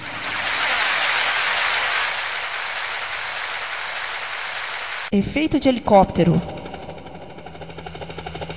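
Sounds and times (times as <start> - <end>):
applause sound effect: 0.0 - 5.1
speech: 5.1 - 6.6.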